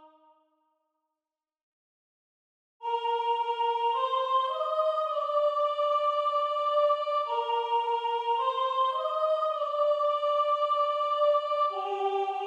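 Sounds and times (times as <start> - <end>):
choir of women's voices: 2.8 - 12.4.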